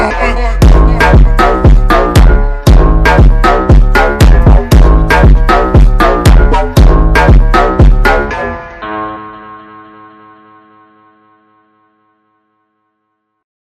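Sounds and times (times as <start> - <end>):
slowed Brazilian funk music: 0.0 - 9.4.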